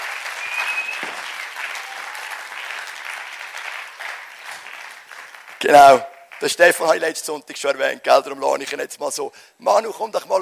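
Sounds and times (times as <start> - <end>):
crowd applause: 0.0 - 6.6
speech: 5.6 - 10.4.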